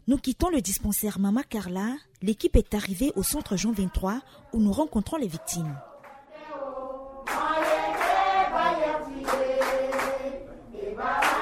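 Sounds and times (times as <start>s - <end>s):
speech: 0.1s - 5.9s
group singing a welcome song at the Centre Jean 23: 5.1s - 11.3s.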